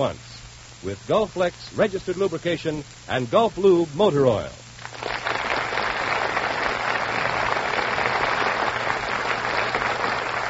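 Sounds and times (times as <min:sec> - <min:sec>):
speech: 0:00.0 - 0:04.6
studio audience applause: 0:04.8 - 0:10.4.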